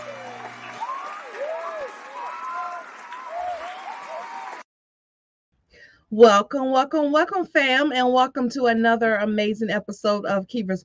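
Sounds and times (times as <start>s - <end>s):
audience applause welcoming a show host and producer: 0.0s - 4.7s
speech: 6.1s - 10.8s.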